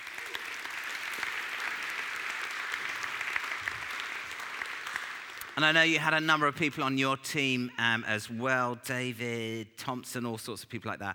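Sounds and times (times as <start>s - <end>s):
audience round of applause: 0.0s - 5.8s
speech: 5.6s - 11.1s.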